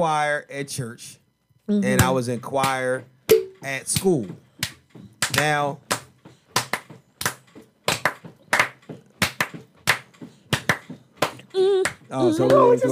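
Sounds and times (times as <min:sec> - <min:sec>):
speech: 0:00.0 - 0:04.4, 0:05.3 - 0:05.8, 0:11.6 - 0:12.9
people clapping along: 0:04.6 - 0:12.9.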